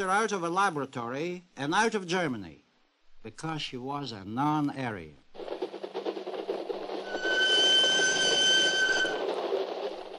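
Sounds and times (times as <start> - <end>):
speech: 0.0 - 2.6, 3.2 - 5.2
train rumbling along the rails: 5.2 - 10.1
metallic train wheel squeal: 7.0 - 9.5.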